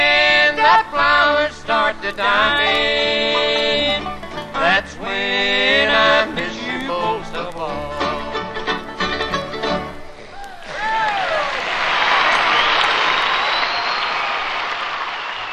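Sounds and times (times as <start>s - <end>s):
band's final notes: 0.0s - 10.4s
audience applause after a song: 10.3s - 15.5s
audience whistling: 10.4s - 15.5s.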